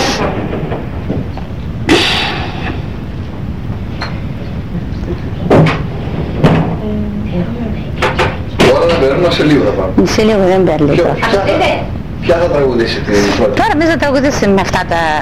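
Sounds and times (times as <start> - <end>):
door being closed: 0.0 - 1.6, 5.5 - 6.8
low noise: 0.0 - 15.2
speech: 9.2 - 15.2.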